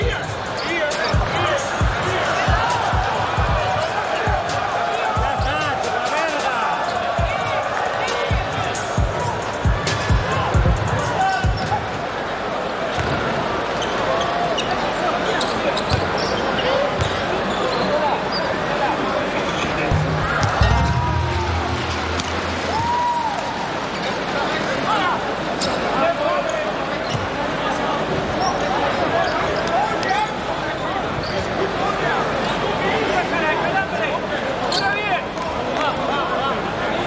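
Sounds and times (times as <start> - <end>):
commentators talking: 0.0 - 11.8
crowd hubbub: 0.0 - 37.0
basketball bouncing before a technical foul free throw: 19.9 - 22.4.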